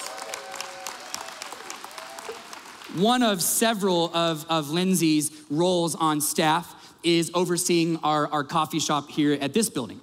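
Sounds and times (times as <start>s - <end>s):
audience clapping: 0.0s - 3.3s
speech: 2.9s - 10.0s.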